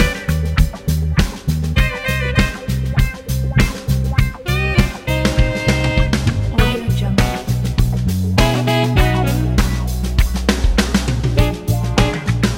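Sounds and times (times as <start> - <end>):
wah-wah soul music: 0.0 - 12.5.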